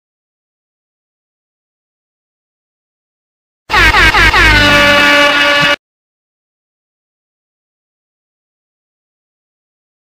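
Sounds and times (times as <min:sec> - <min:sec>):
reggaeton siren effect: 0:03.7 - 0:05.8.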